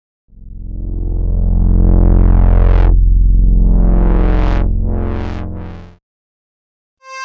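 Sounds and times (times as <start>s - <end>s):
Moog modular synthesizer: 0.6s - 6.0s.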